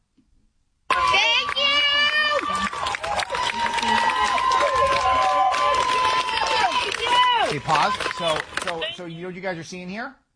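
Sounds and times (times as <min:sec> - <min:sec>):
female protesters cheering and shouting: 0:00.9 - 0:09.0
scattered clapping: 0:00.9 - 0:09.1
speech: 0:07.9 - 0:10.2.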